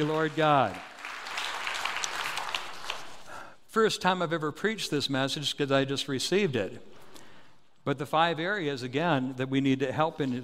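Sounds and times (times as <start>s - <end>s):
speech: 0.0s - 0.9s, 3.7s - 6.9s, 7.8s - 10.4s
audience hand clapping: 0.0s - 3.4s.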